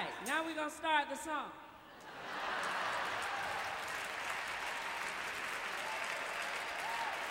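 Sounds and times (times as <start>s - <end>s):
speech: 0.2s - 2.4s
audience clapping: 2.5s - 7.2s.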